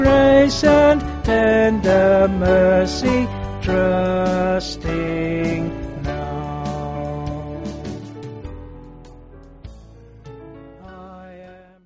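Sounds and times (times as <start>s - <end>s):
band playing: 0.0s - 8.3s
pipe organ: 0.0s - 11.6s
piano: 0.0s - 11.8s.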